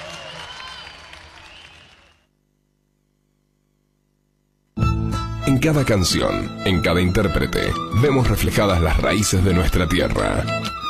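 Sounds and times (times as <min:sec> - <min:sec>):
audience applause: 0:00.0 - 0:02.3
speech: 0:05.5 - 0:10.8.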